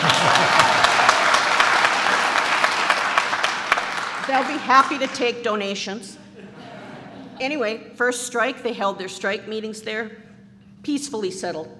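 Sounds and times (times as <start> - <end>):
laughter: 0.0 - 2.4, 6.2 - 7.4
audience applause: 0.0 - 5.1
speech: 4.4 - 6.2, 7.4 - 11.7.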